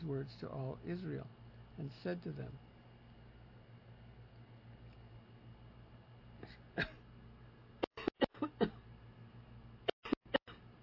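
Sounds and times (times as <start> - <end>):
speech: 0.1 - 2.7
person coughing after choking on water: 6.4 - 7.0, 7.9 - 8.8.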